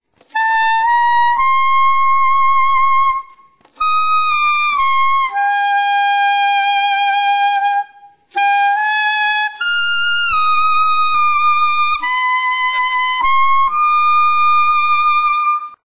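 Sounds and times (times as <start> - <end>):
saxophone open phrase: 0.3 - 15.7.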